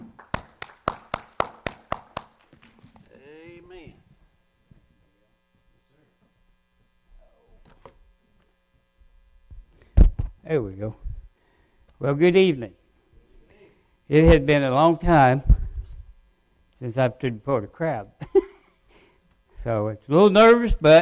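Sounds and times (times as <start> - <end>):
hand claps: 0.0 - 2.8
speech: 10.5 - 11.0, 12.0 - 12.8, 14.1 - 15.5, 16.8 - 18.2, 19.6 - 21.0.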